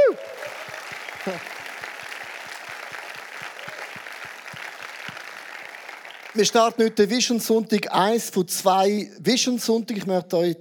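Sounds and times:
audience applause: 0:00.0 - 0:07.0
speech: 0:01.2 - 0:01.6, 0:06.4 - 0:10.5.

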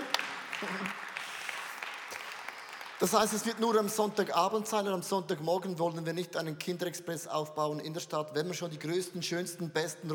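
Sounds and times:
audience applause: 0:00.0 - 0:04.0
speech: 0:03.0 - 0:10.1.

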